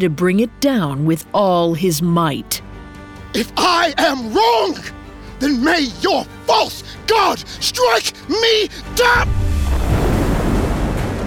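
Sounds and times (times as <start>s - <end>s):
speech: 0.0s - 2.7s, 3.3s - 9.5s
deep boom of thunder from the clouds overhead: 9.2s - 11.2s.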